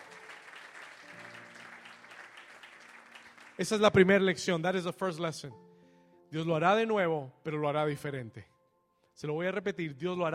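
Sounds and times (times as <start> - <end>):
audience applause: 0.0 - 4.3
speech: 3.6 - 5.6, 6.3 - 8.5, 9.2 - 10.3.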